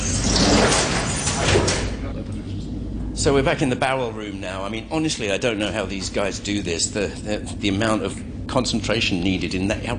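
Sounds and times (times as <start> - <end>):
door being shut: 0.1 - 2.0
speech: 3.3 - 9.9.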